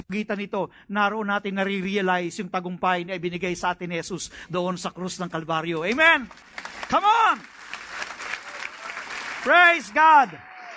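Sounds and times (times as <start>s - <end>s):
speech: 0.0s - 7.6s, 9.4s - 10.5s
audience applause: 6.5s - 10.7s.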